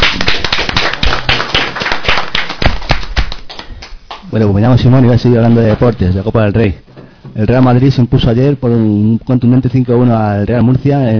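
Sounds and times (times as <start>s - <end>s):
audience applause: 0.0s - 3.9s
speech: 4.4s - 6.8s, 7.4s - 11.1s.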